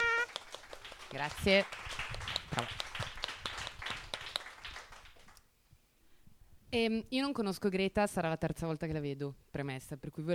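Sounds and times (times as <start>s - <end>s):
audience applause: 0.0s - 5.4s
speech: 1.1s - 2.8s, 6.7s - 10.3s.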